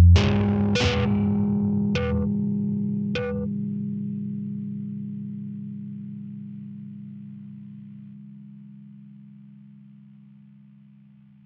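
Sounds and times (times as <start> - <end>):
distorted sound: 0.2 - 8.1.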